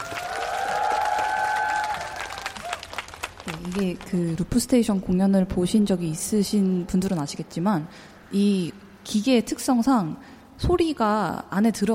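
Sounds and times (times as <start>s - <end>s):
audience applause: 0.0s - 4.1s
speech: 3.5s - 11.9s.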